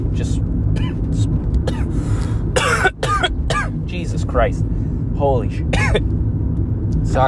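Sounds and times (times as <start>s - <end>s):
low steady rumble: 0.0s - 7.2s
man coughing after something went down the wrong pipe: 0.8s - 3.8s, 5.7s - 6.1s
speech: 4.3s - 6.3s, 7.1s - 7.2s.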